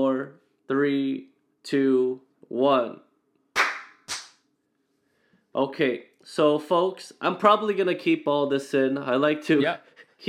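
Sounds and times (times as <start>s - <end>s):
speech: 0.0s - 3.0s, 5.6s - 10.2s
single hand clap for audio sync: 3.6s - 4.4s.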